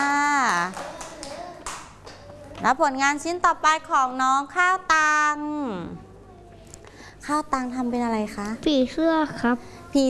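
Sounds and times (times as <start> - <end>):
scattered hand claps applauding a child's butterfly drawing: 0.4 - 2.4
speech: 2.6 - 6.0, 7.2 - 10.0.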